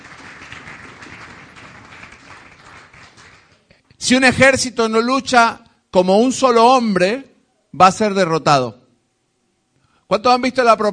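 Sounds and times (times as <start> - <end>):
audience applause: 0.0 - 3.7
speech: 4.0 - 8.8, 10.1 - 10.9.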